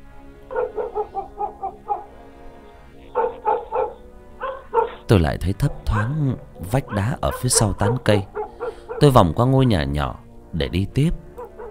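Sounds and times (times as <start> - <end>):
dog barking loudly inside a house: 0.5 - 2.3, 3.1 - 9.8, 11.4 - 11.6
speech: 5.1 - 8.4, 9.0 - 11.2.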